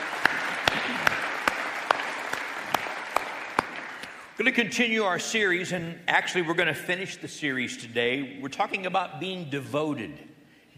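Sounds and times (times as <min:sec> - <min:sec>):
congregation clapping at a church service: 0:00.0 - 0:04.4
speech: 0:04.4 - 0:10.7.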